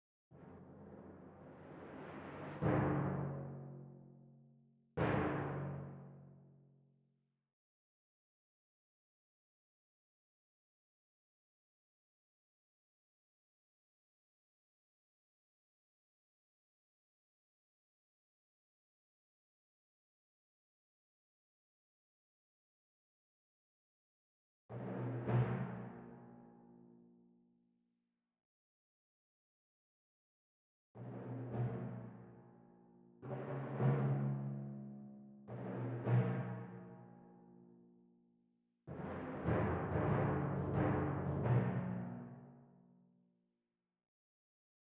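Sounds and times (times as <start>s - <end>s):
timpani: 0.4s - 4.0s, 5.0s - 6.2s, 24.7s - 26.2s, 31.0s - 32.4s, 33.2s - 36.9s, 38.9s - 42.5s.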